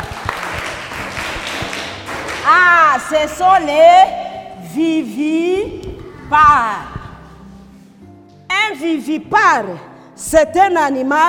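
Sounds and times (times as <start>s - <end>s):
group applause during a question-and-answer session: 0.0s - 3.7s
speech: 2.5s - 6.9s, 8.7s - 11.2s.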